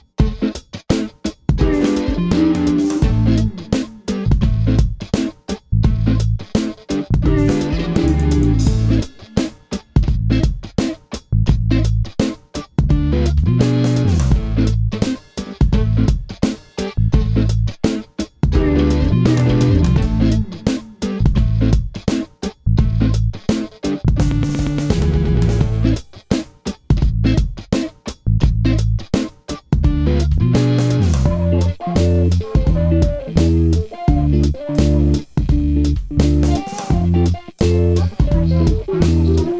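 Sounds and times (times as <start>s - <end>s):
bacon beat: 0.2s - 39.5s.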